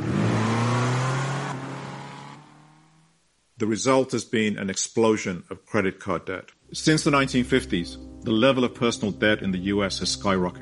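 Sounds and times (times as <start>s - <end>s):
Fiat 500 Abarth engine revving: 0.0s - 3.1s
speech: 3.6s - 10.6s.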